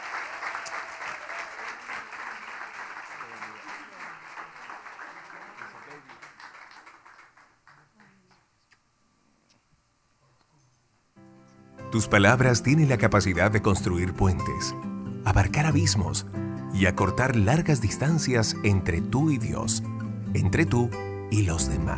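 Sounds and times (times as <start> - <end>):
audience applauding: 0.0 - 8.5
speech: 11.9 - 21.9.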